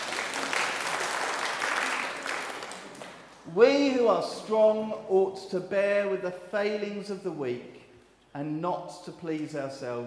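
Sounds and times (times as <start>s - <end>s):
applause: 0.0s - 3.4s
speech: 3.6s - 7.8s, 8.4s - 10.0s.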